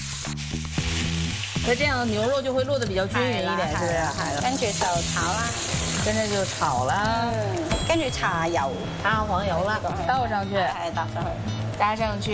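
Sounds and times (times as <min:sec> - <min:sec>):
beef mixed with egg sizzling in a pan: 0:00.0 - 0:09.5
people talking: 0:01.7 - 0:12.3.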